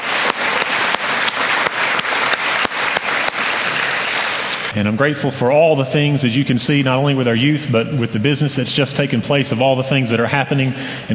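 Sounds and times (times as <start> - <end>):
audience applause: 0.0 - 4.7
speech: 4.8 - 11.1.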